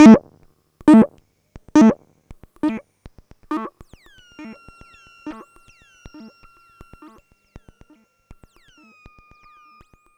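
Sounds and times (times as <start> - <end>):
system sweep tones: 0.0 - 0.2, 0.9 - 1.1, 1.8 - 2.0.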